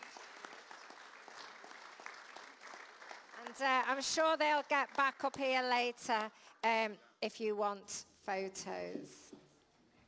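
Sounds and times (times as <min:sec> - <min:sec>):
audience clapping: 0:00.0 - 0:05.5
speech: 0:03.5 - 0:09.3.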